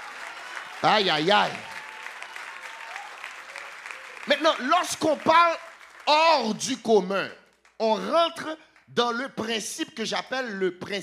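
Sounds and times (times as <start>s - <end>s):
audience applauding: 0.0s - 6.7s
speech: 0.8s - 1.7s, 4.4s - 11.0s.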